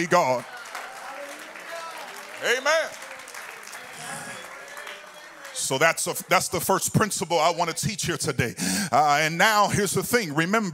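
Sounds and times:
speech: 0:00.0 - 0:00.6, 0:02.4 - 0:03.0, 0:05.6 - 0:10.7
crowd clapping: 0:00.0 - 0:07.8.

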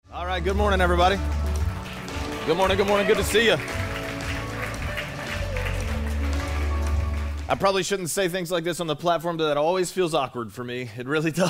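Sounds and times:
speech: 0:00.4 - 0:01.4, 0:02.4 - 0:03.8, 0:07.5 - 0:11.4
audience applause: 0:00.6 - 0:07.8.

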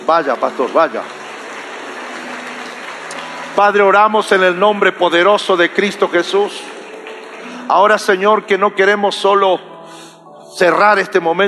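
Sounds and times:
crowd applauding loudly: 0:00.0 - 0:08.8
speech: 0:00.1 - 0:01.2, 0:03.6 - 0:06.7, 0:07.7 - 0:09.7, 0:10.6 - 0:11.4.

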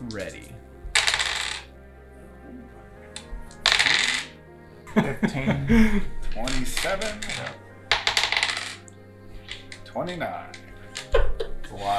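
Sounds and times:
speech: 0:00.1 - 0:00.7, 0:05.0 - 0:07.6, 0:10.0 - 0:11.9
rolling dice: 0:01.0 - 0:01.7, 0:03.2 - 0:04.4, 0:06.5 - 0:08.9
laughter: 0:04.8 - 0:07.6.

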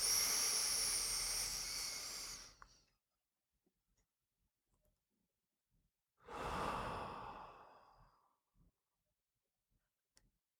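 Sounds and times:
deep slow breaths in an ancient meditative breathing practice: 0:00.0 - 0:02.6, 0:06.3 - 0:08.4.

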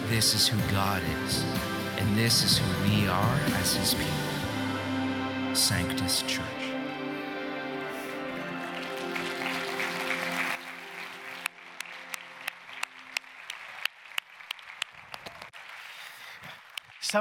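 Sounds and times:
sustained musical tones: 0:00.0 - 0:12.6
speech: 0:00.1 - 0:04.2, 0:05.6 - 0:06.6
crowd applauding: 0:08.0 - 0:17.1.

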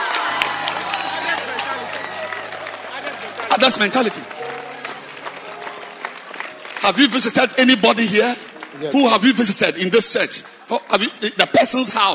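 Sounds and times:
audience clapping hands: 0:00.0 - 0:12.1
speech: 0:03.6 - 0:04.5, 0:06.9 - 0:12.1.

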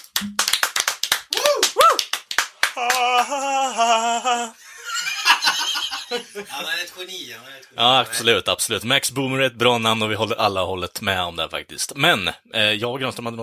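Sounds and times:
applause: 0:00.0 - 0:03.4
speech: 0:02.8 - 0:04.6, 0:06.1 - 0:13.4
laughter: 0:02.8 - 0:06.8.

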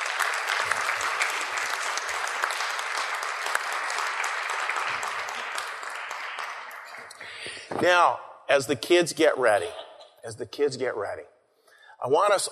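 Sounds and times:
audience applause: 0:00.0 - 0:07.4
speech: 0:07.8 - 0:11.3, 0:12.0 - 0:12.4.

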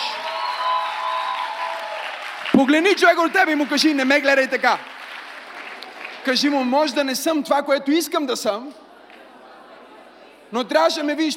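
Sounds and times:
audience applauding: 0:00.0 - 0:07.0
speech: 0:02.6 - 0:04.9, 0:06.2 - 0:08.8, 0:10.5 - 0:11.3.

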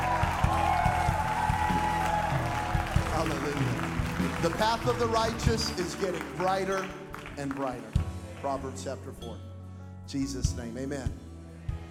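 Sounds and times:
audience clapping hands: 0:00.0 - 0:08.8
speech: 0:04.4 - 0:09.5, 0:10.1 - 0:11.2.

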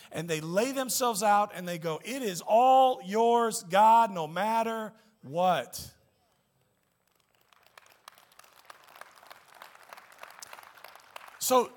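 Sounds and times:
speech: 0:00.2 - 0:06.0, 0:11.5 - 0:11.7
smattering of applause: 0:06.8 - 0:11.7.

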